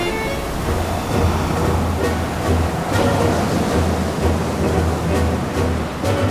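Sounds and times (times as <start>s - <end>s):
stormy ocean waves crashing: 0.0s - 6.3s.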